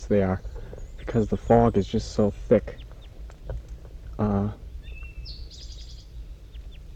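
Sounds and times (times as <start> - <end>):
steady low hum: 0.0 - 6.9
wild birds calling softly back and forth: 0.0 - 6.9
speech: 0.1 - 0.5, 1.1 - 2.8, 4.2 - 4.6.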